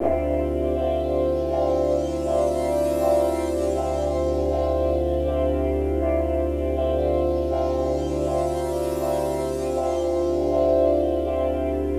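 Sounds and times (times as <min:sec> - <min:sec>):
synth pad in D: 0:00.0 - 0:11.9.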